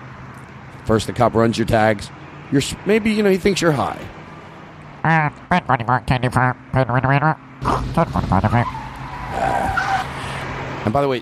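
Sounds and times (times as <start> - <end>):
speech: 0.9 - 4.2, 5.0 - 8.8, 10.8 - 11.1
person imitating car engine revving: 4.9 - 10.5.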